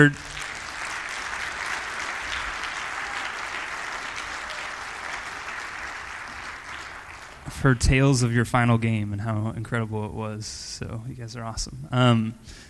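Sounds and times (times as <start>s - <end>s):
speech: 0.0s - 0.3s, 7.6s - 12.6s
audience applause: 0.0s - 7.8s.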